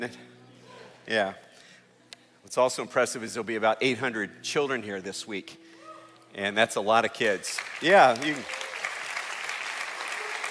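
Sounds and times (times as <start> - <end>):
speech: 0.0 - 0.3, 1.1 - 1.4, 2.5 - 5.6, 6.3 - 8.6
church congregation applause: 7.1 - 10.4.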